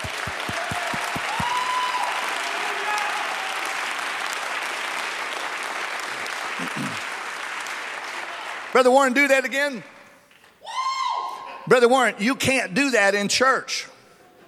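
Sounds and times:
audience clapping hands: 0:00.0 - 0:09.0
speech: 0:08.8 - 0:09.9, 0:11.7 - 0:13.9.

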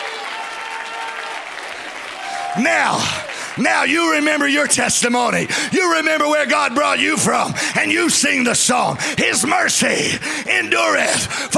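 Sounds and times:
audience clapping hands: 0:00.0 - 0:09.1
speech: 0:02.6 - 0:11.5.

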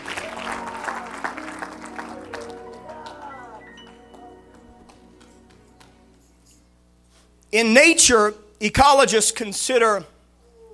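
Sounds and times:
audience clapping hands: 0:00.0 - 0:06.3
speech: 0:07.5 - 0:10.1.

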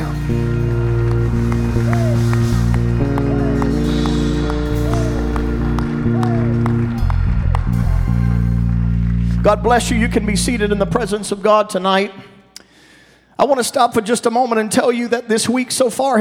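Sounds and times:
audience clapping hands: 0:00.0 - 0:11.4
speech: 0:09.5 - 0:12.3, 0:13.4 - 0:16.1.

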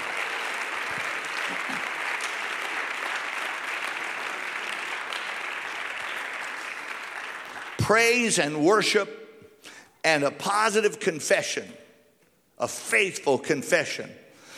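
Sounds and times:
audience clapping hands: 0:00.0 - 0:08.4
speech: 0:07.9 - 0:09.2, 0:10.0 - 0:11.8, 0:12.6 - 0:14.2.

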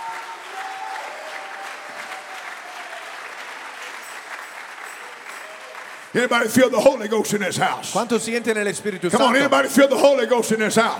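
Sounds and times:
audience clapping in praise: 0:00.0 - 0:07.2
speech: 0:06.2 - 0:10.9.

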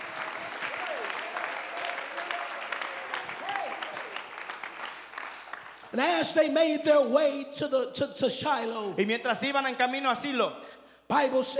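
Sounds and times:
people clapping hands in the house of the Lord: 0:00.0 - 0:06.2
speech: 0:05.9 - 0:11.5.

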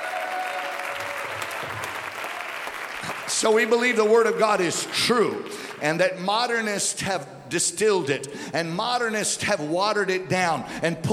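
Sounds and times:
audience clapping hands: 0:00.0 - 0:06.2
speech: 0:03.4 - 0:11.1.

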